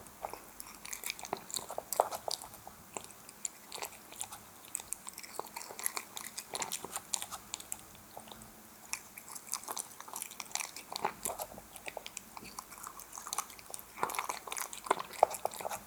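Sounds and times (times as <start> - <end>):
cat eating wet food: 0.0 - 15.8.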